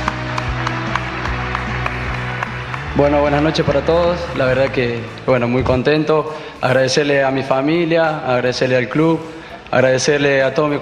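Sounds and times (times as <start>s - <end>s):
steady rhythmic audience clapping: 0.0s - 5.6s
speech: 3.0s - 10.7s.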